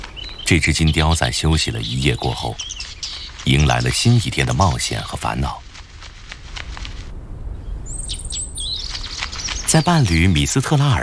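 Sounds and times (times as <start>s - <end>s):
shrill whistled shrike calls: 0.0s - 4.6s, 7.6s - 10.4s
shrike chattering: 0.0s - 5.7s, 7.9s - 11.0s
low rumbling wind noise: 0.0s - 11.0s
speech: 0.5s - 5.6s, 9.7s - 11.0s.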